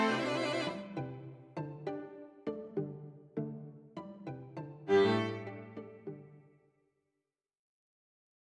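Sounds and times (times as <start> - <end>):
string quartet: 0.0 - 6.4.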